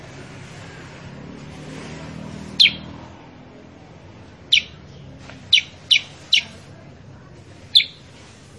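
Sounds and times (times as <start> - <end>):
Sooty-headed bulbul calls: 2.6 - 2.9, 4.5 - 6.6, 7.7 - 8.1.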